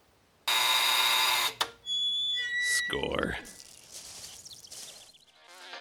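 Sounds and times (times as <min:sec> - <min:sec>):
door entry buzzer: 0:00.5 - 0:03.0
thinner high-pitched tone: 0:02.0 - 0:03.7
speech: 0:02.9 - 0:03.6.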